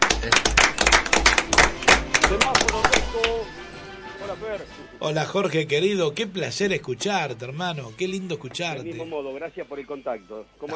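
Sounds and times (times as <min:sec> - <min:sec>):
applause: 0:00.0 - 0:03.5
speech: 0:00.2 - 0:00.5, 0:02.3 - 0:02.6, 0:04.4 - 0:10.7.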